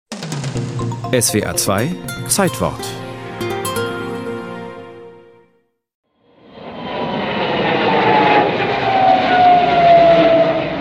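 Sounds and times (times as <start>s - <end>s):
speech: 1.1s - 3.1s
Douglas Skyraider fighter aircraft engine roar flying low over enemy territory: 6.4s - 10.7s.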